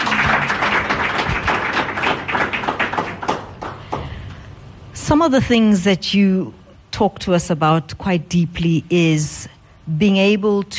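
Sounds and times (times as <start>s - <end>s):
audience clapping: 0.0s - 4.3s
speech: 5.1s - 10.7s.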